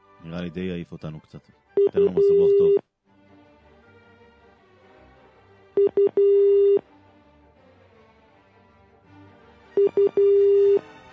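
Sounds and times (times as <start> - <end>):
speech: 0.2 - 2.9
outgoing phone ring tone ringing unanswered: 1.8 - 2.8, 5.8 - 6.8, 9.8 - 10.8.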